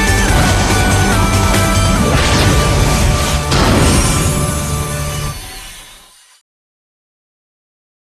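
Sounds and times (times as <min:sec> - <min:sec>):
trailer music: 0:00.0 - 0:06.4.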